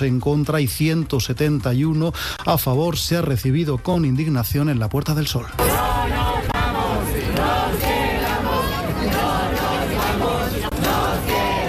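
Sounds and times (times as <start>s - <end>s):
speech: 0.0s - 5.9s
protesters chanting slogans: 5.6s - 11.6s.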